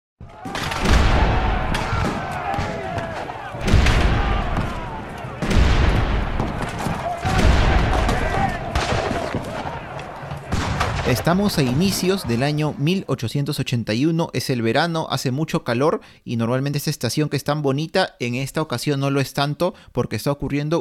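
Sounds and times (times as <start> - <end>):
battle noise: 0.2 - 12.8
heavy war cannons firing: 0.3 - 12.6
speech: 11.1 - 20.7.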